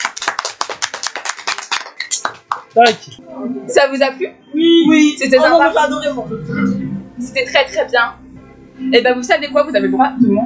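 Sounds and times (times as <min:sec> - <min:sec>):
people clapping: 0:00.0 - 0:03.2
speech: 0:02.8 - 0:08.2, 0:08.8 - 0:10.4.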